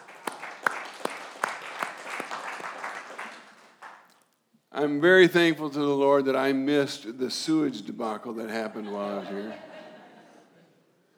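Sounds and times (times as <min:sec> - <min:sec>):
church congregation clapping in scattered uneven claps: 0:00.0 - 0:04.3
speech: 0:04.8 - 0:09.7
laughter: 0:08.4 - 0:10.8.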